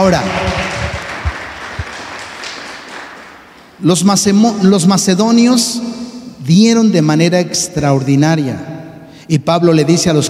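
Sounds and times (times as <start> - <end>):
speech: 0.0 - 0.6, 3.8 - 8.7, 9.3 - 10.2
audience applause: 0.0 - 3.8.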